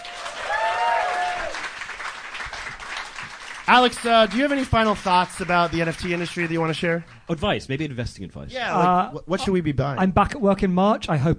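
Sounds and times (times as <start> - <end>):
round of applause: 0.0 - 7.2
speech: 3.7 - 11.3.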